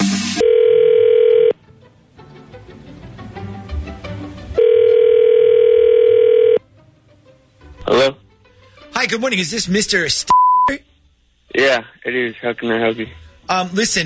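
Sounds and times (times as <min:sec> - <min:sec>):
telephone tone: 0:00.4 - 0:01.6, 0:04.6 - 0:06.6
speech: 0:09.1 - 0:10.8, 0:11.6 - 0:14.0.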